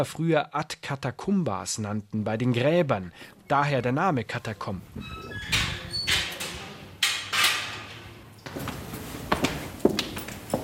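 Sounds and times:
speech: 0.0 - 5.7
footsteps descending stairs into the San Sebastiano catacombs on the Via Appia: 8.4 - 10.6.

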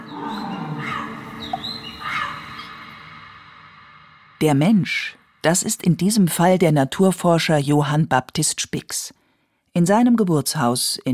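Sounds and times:
chattering bird calls: 0.0 - 3.5
parrots squawking in treetops: 0.0 - 3.6
speech: 4.4 - 9.2, 9.8 - 11.1.

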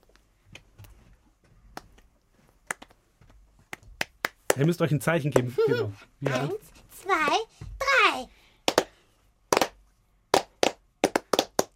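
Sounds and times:
group clapping a rhythm: 3.7 - 5.6, 8.6 - 11.7
speech: 4.6 - 6.7
laughter: 5.4 - 6.6.

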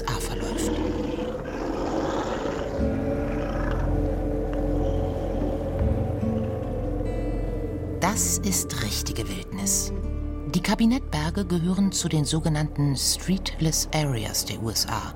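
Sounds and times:
wolverine growling in the wild: 0.0 - 8.0
speech: 8.1 - 15.1.

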